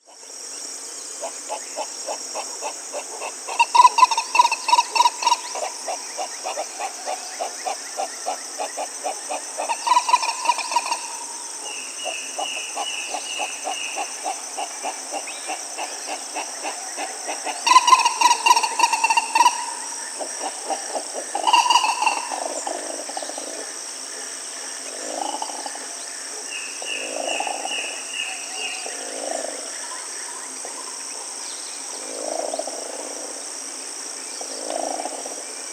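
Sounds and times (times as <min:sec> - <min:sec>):
shrill insect chorus: 0:00.0 - 0:35.7
speech: 0:01.2 - 0:03.8
bird calls: 0:01.2 - 0:23.5.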